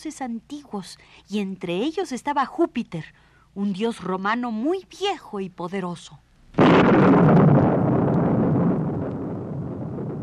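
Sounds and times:
speech: 0.0s - 7.4s
thunderclap: 6.6s - 10.2s.

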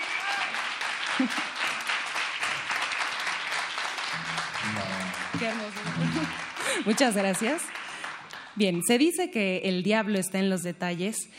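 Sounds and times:
audience applause: 0.0s - 8.6s
laughter: 1.1s - 1.6s, 4.2s - 7.3s
speech: 1.2s - 1.6s, 5.4s - 7.8s, 8.6s - 11.3s
audience voices: 4.1s - 6.9s.

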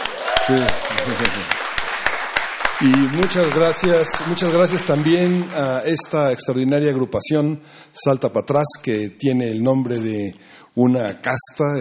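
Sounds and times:
audience applause: 0.0s - 6.4s
sharp evenly spaced loud claps: 0.0s - 6.9s
speech: 0.5s - 1.8s, 2.8s - 11.7s.

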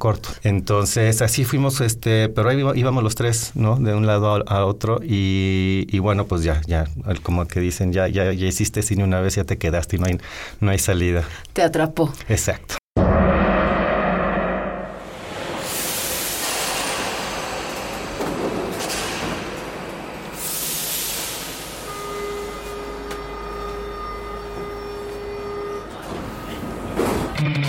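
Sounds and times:
speech: 0.0s - 12.8s
loud whooshing rushes of air from a speeding metro train: 13.1s - 22.3s
metro train speeding across the city: 15.0s - 27.5s.

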